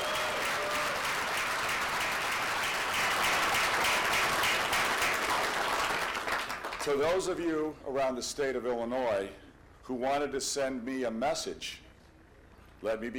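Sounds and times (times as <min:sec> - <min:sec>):
large audience applause: 0:00.0 - 0:07.0
speech: 0:06.8 - 0:11.8, 0:12.8 - 0:13.1.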